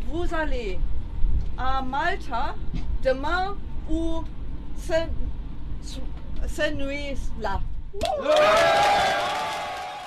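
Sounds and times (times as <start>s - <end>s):
speech: 0.1s - 1.0s, 1.6s - 5.2s, 5.8s - 9.4s
rescued people cheering aboard the Alan Kurdi rescue ship: 8.0s - 10.0s.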